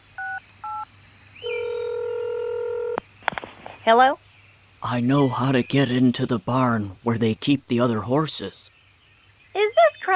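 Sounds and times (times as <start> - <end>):
long steady electronic phone tone: 0.2 - 0.8, 1.5 - 3.0
speech: 3.9 - 4.2, 4.8 - 8.8.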